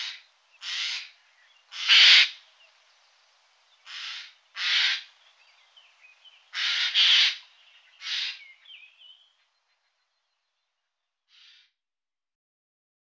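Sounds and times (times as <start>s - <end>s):
Eurasian jay calling: 0.0s - 2.4s, 3.8s - 5.2s, 6.5s - 9.2s, 11.3s - 11.7s.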